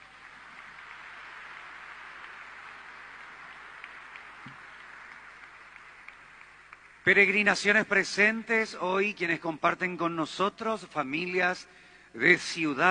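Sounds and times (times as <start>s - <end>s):
crowd clapping: 0.0s - 7.8s
speech: 7.1s - 12.8s.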